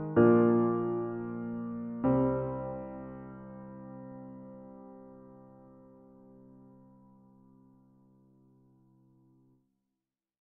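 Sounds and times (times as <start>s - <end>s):
acoustic unplugged piano karaoke instrumental: 0.0s - 6.8s.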